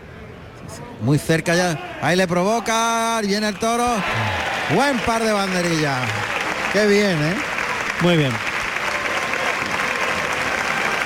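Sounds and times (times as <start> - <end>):
speech: 0.7 - 8.5
bullring crowd applauding: 3.8 - 11.0.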